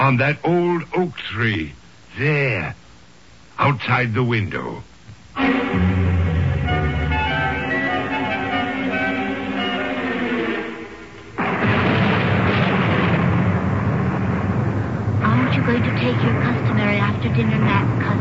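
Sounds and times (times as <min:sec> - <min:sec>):
speech: 0:00.0 - 0:02.8, 0:03.6 - 0:05.9, 0:15.7 - 0:18.2
crash of thunder rumbling: 0:05.4 - 0:08.6, 0:11.4 - 0:18.2
sustained droning tones: 0:05.4 - 0:18.2.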